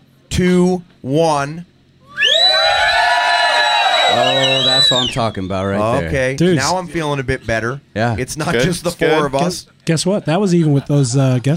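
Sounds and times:
speech: 0.4 - 1.7, 4.1 - 11.5
live audience cheering and shouting: 2.1 - 5.4.

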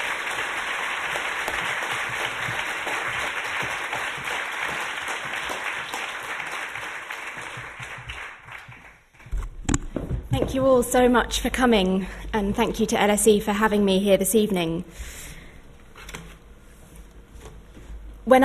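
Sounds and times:
audience applause welcoming a speaker at an LSE lecture: 0.0 - 9.3
speech: 10.5 - 15.2.

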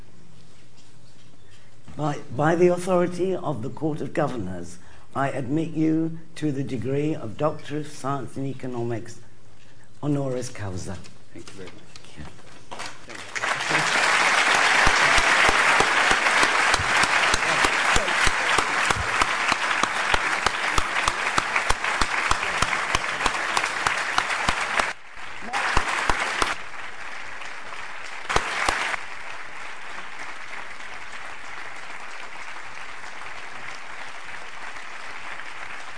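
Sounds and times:
speech: 2.0 - 9.2, 10.0 - 12.4
audience applause at degree ceremony: 12.8 - 35.9.

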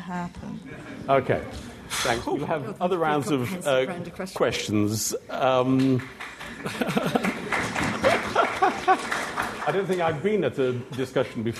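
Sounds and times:
speech: 0.1 - 7.3, 8.8 - 11.5
audience applauding: 5.5 - 10.5
laughter: 6.4 - 9.6.

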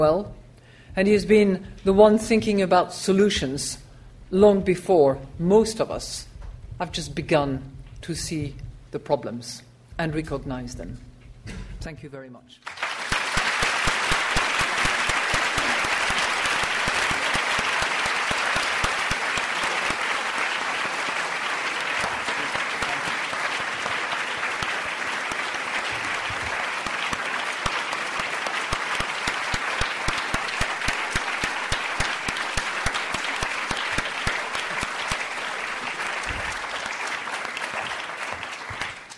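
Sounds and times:
speech: 0.0 - 0.4, 1.0 - 12.8
audience applause: 12.6 - 39.1.

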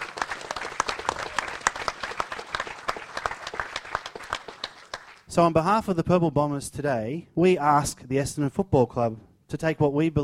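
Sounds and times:
audience applause for the St Kilda Football Club: 0.0 - 5.3
speech: 5.3 - 10.2.

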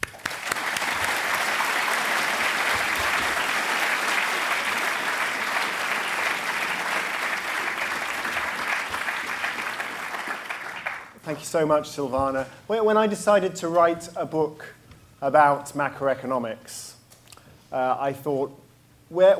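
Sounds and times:
audience applause: 0.0 - 11.2
speech: 11.3 - 17.0, 17.7 - 19.3.

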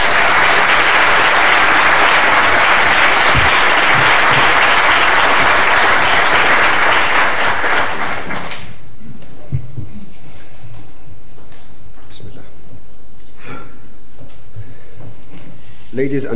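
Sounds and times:
audience applause welcoming a speaker to a lecture on Libya at the LSE: 0.0 - 8.8.

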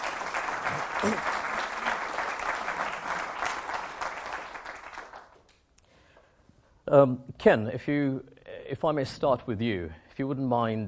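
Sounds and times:
audience applause: 0.0 - 5.4
speech: 1.0 - 1.3, 6.9 - 10.8.

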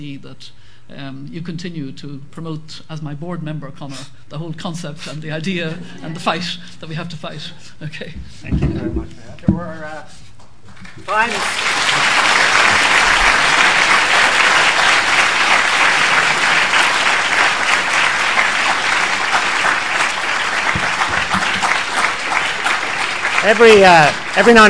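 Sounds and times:
speech: 0.0 - 10.2, 11.0 - 12.2, 23.4 - 24.6
round of applause from many people: 10.8 - 24.6.

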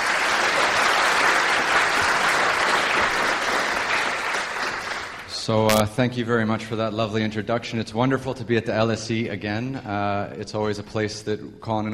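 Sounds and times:
audience round of applause: 0.0 - 5.3
speech: 5.5 - 11.9.

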